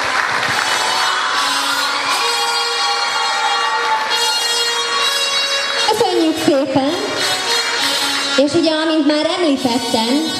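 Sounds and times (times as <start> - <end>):
audience applause for the girls: 0.0 - 5.8, 7.1 - 8.4
speech: 8.4 - 10.3.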